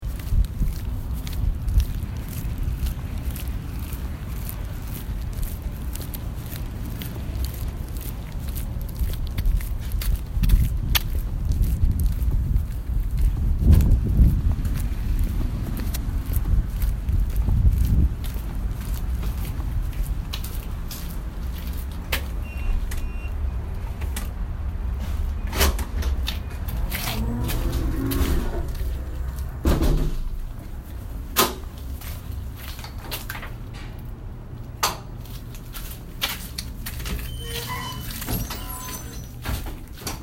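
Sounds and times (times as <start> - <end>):
footsteps: 0.0 - 23.1, 23.7 - 34.1, 35.1 - 40.2.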